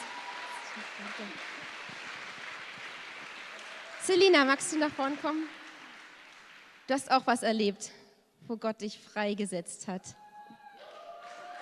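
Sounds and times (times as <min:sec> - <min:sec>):
audience clapping: 0:00.0 - 0:07.5, 0:10.8 - 0:11.6
speech: 0:00.8 - 0:02.1, 0:04.0 - 0:05.6, 0:06.9 - 0:10.2.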